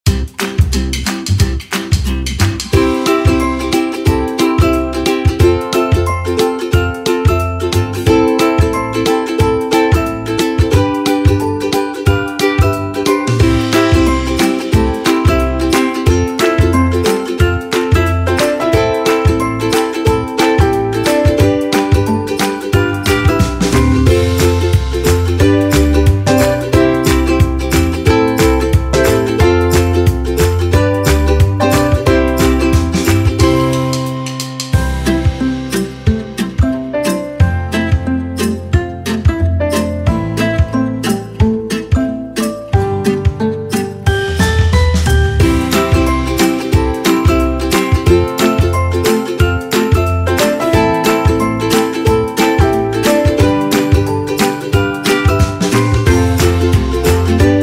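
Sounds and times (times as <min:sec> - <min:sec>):
instrumental children's music: 0:00.0 - 0:57.6.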